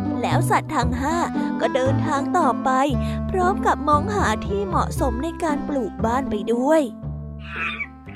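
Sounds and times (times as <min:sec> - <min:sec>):
speech: 0:00.2 - 0:07.8
monkey calling from a tree: 0:07.4 - 0:08.1.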